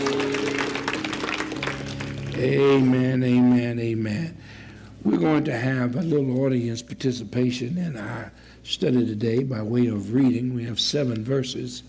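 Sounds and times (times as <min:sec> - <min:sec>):
church congregation applauding in praise: 0:00.0 - 0:03.6
speech: 0:02.4 - 0:11.8.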